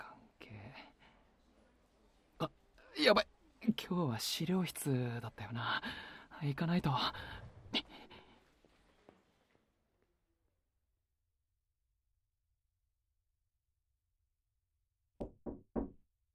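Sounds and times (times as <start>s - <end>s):
speech: 2.4s - 8.1s
knocking on a door: 15.2s - 16.1s.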